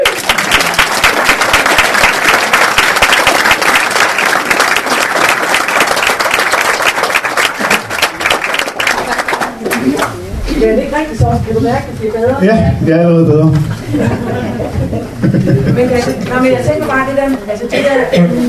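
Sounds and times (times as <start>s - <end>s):
crowd clapping: 0.0s - 10.3s
speech: 10.6s - 18.4s
laughter: 13.6s - 16.4s.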